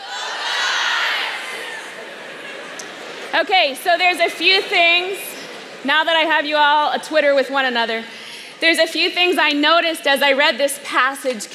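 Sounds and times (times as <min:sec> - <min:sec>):
crowd of guys cheering: 0:00.0 - 0:03.3
speech: 0:03.3 - 0:11.5.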